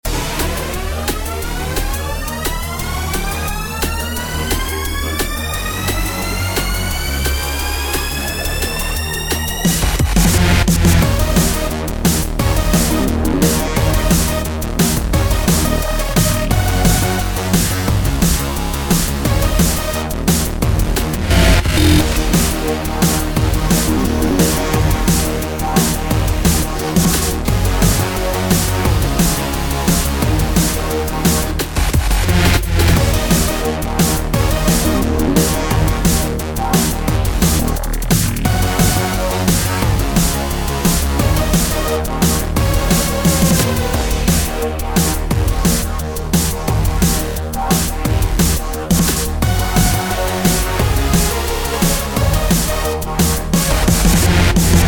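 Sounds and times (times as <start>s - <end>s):
in-game music: 0.1s - 54.8s.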